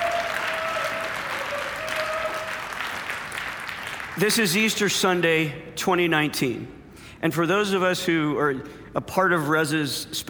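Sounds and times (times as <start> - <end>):
audience clapping: 0.0 - 4.6
speech: 4.2 - 10.2.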